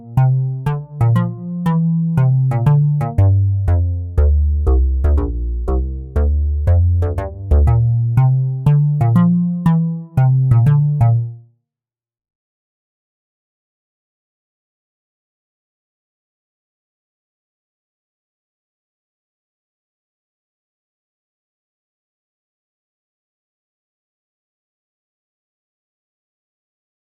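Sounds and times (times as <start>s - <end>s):
walking bass line in D: 0.0s - 11.4s.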